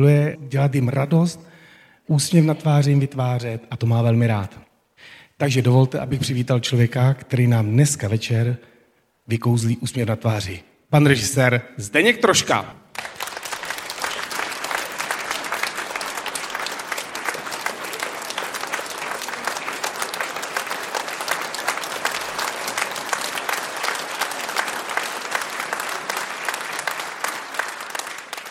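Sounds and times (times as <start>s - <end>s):
speech: 0.0s - 8.7s, 9.3s - 13.1s
large audience applause: 12.9s - 28.4s.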